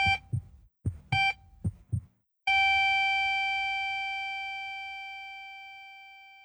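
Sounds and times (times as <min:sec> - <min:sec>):
heart monitor flatline tone: 0:00.0 - 0:03.5.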